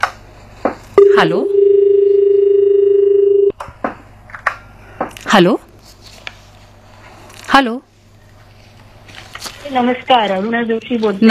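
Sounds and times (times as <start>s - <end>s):
telephone tone of a radio phone-in line connecting: 1.0s - 3.5s
speech: 1.2s - 1.6s, 5.3s - 5.6s, 7.6s - 7.9s, 9.7s - 11.2s.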